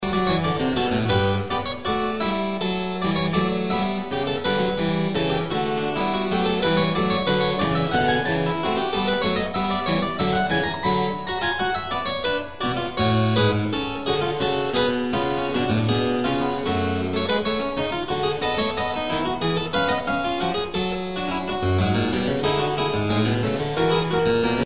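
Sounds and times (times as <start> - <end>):
keyboard fugue: 0.0 - 24.6.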